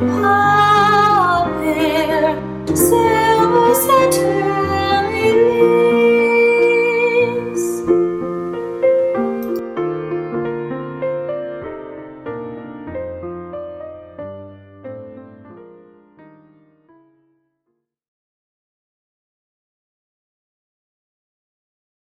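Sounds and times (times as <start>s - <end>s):
sacred hymn: 0.0s - 14.6s.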